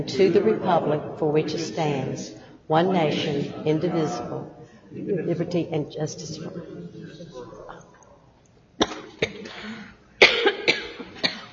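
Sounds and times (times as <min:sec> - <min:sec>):
speech: 0:00.0 - 0:07.5
person coughing after choking during a prayer: 0:08.8 - 0:11.5.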